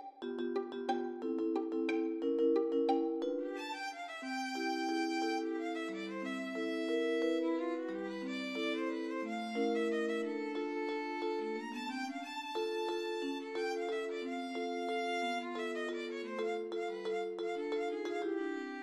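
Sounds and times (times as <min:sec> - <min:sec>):
valse musette: 0:00.4 - 0:18.8.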